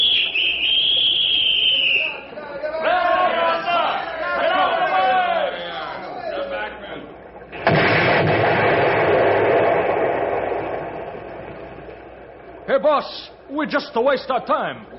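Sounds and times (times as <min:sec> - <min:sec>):
high steady warning whistle: 0:00.0 - 0:02.4
several voices shouting over one another: 0:01.4 - 0:06.2
explosive blast on log pile: 0:07.5 - 0:12.7
speech: 0:12.8 - 0:14.9.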